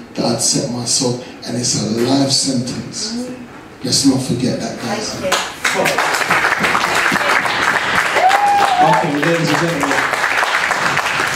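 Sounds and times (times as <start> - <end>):
speech: 0.2 - 6.5, 8.8 - 10.2
crowd applauding: 5.3 - 11.3.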